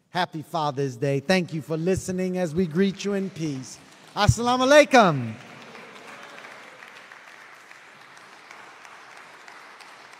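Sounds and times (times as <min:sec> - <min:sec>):
speech: 0:00.2 - 0:05.5
round of applause: 0:02.0 - 0:10.1.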